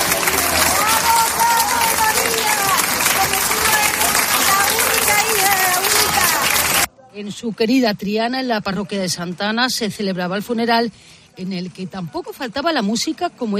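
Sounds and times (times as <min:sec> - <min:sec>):
crowd cheering and applauding at funeral procession: 0:00.0 - 0:06.9
many overlapping shouting voices: 0:00.0 - 0:06.9
speech: 0:07.2 - 0:13.5.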